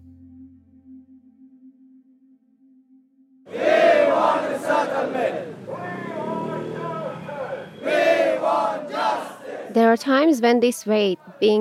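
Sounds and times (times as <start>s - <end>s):
hunger-striking protesters chanting outside UNHCR headquarters: 3.5s - 10.0s, 11.0s - 11.5s
speech: 9.8s - 11.5s.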